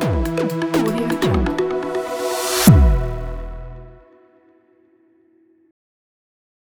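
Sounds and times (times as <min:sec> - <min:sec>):
tech logo jingle: 0:00.1 - 0:04.0.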